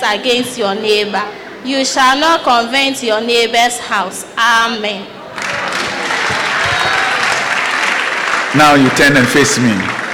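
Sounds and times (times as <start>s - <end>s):
speech: 0.0s - 5.2s, 8.5s - 9.9s
audience applause: 5.4s - 10.1s.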